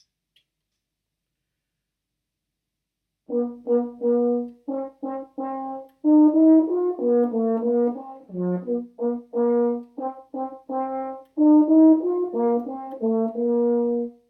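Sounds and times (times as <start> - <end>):
horn: 3.3 - 14.2.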